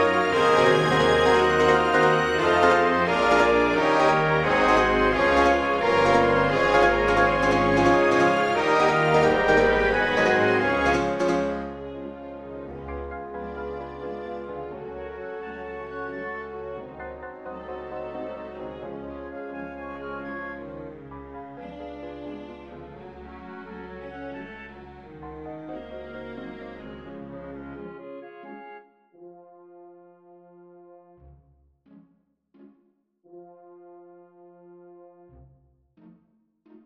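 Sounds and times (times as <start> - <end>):
piano concerto: 0.0 - 28.8.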